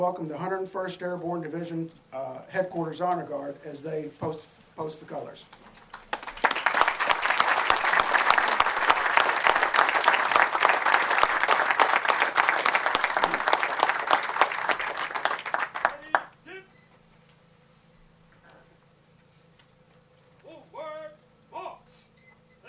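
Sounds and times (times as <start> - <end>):
speech: 0.0 - 5.7
standing ovation from a large audience at an official event: 5.5 - 16.3.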